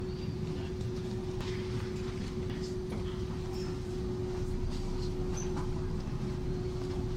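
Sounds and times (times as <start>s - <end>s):
metro ambience: 0.0s - 7.1s.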